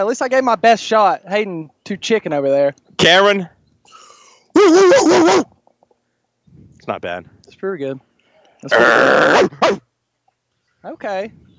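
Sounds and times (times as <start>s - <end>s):
speech: 0.0s - 3.5s, 4.6s - 5.5s, 6.9s - 9.9s, 10.8s - 11.5s
person imitating dog barking: 4.6s - 5.5s, 8.7s - 9.8s.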